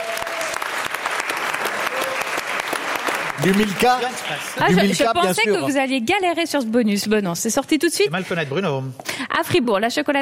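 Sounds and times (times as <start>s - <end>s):
audience applause: 0.0s - 5.4s
speech: 3.4s - 10.2s.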